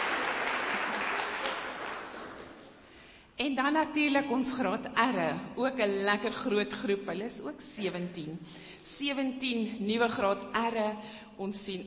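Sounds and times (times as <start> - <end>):
audience clapping: 0.0 - 2.8
speech: 3.4 - 11.8.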